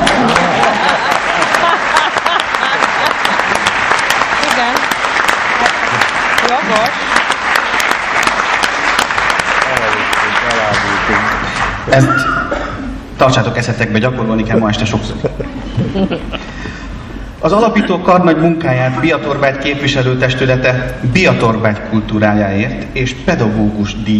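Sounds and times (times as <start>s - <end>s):
laughter: 0.0s - 3.8s, 14.6s - 16.8s
audience applause: 0.0s - 12.2s
speech: 11.9s - 12.3s, 13.2s - 16.4s, 17.4s - 24.1s.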